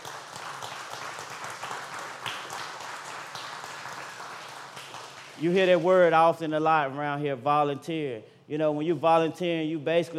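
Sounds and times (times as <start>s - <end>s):
audience round of applause: 0.0s - 5.4s
speech: 5.4s - 10.1s.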